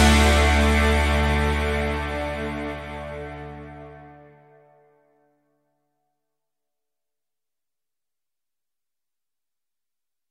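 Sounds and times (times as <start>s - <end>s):
guitars: 0.0s - 4.6s.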